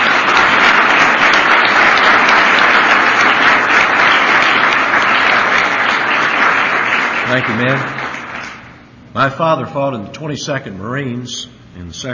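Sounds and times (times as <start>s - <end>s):
crowd applauding: 0.0s - 8.8s
speech: 7.3s - 8.0s, 9.2s - 12.1s.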